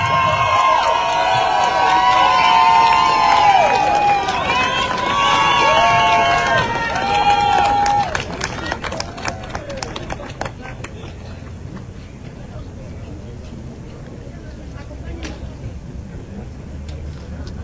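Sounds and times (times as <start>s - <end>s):
crowd applause and cheering: 0.0s - 11.0s.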